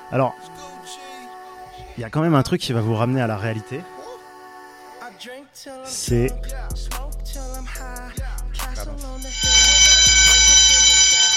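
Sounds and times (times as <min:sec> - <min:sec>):
speech: 0:00.1 - 0:01.0, 0:02.0 - 0:03.9, 0:05.2 - 0:07.0
school class bell ringing: 0:08.8 - 0:11.3.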